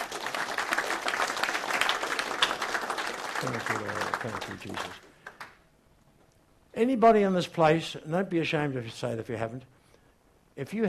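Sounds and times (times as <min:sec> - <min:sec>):
audience clapping: 0:00.0 - 0:05.6
speech: 0:03.4 - 0:05.1, 0:06.8 - 0:09.8, 0:10.6 - 0:10.8.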